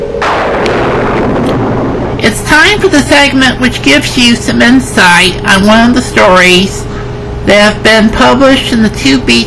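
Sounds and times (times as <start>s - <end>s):
thunderclap: 0.2s - 2.3s
speech: 2.7s - 6.9s, 7.5s - 9.4s.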